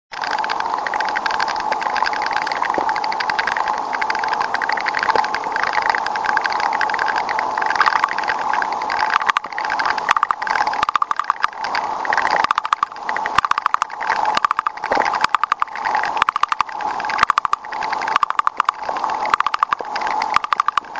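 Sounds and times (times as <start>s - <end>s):
termites: 0.1s - 20.9s.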